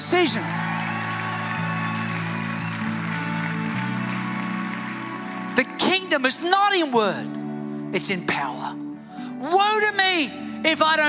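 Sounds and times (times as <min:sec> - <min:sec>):
church audience applauding: 0:00.0 - 0:07.0
speech: 0:00.1 - 0:00.9, 0:06.1 - 0:08.8, 0:09.4 - 0:11.0.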